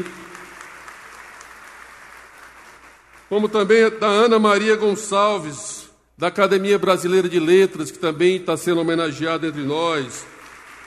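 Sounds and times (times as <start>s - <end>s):
speech: 0.0s - 0.3s, 3.3s - 10.4s
applause for a Brazilian children's author at an honorary gathering: 0.0s - 4.3s, 9.5s - 10.8s.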